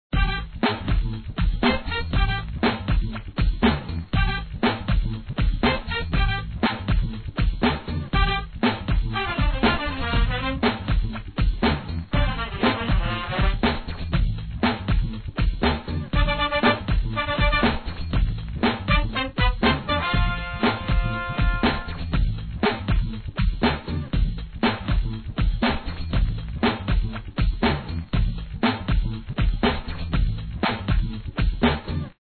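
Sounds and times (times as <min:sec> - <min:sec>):
music loop: 0:00.1 - 0:32.1.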